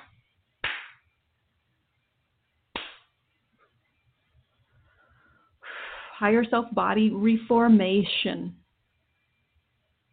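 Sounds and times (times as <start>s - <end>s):
hand clapping: 0.0s - 1.0s, 2.7s - 3.1s
speech: 6.2s - 8.6s.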